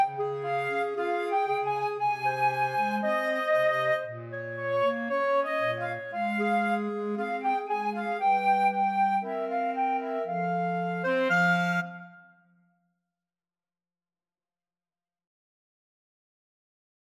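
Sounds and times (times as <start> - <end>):
clarinet: 0.0 - 12.6
flute: 0.0 - 12.6.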